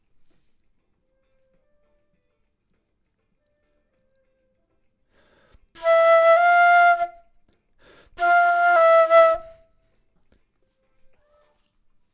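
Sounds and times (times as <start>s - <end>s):
flute: 5.8s - 7.2s, 8.2s - 9.7s.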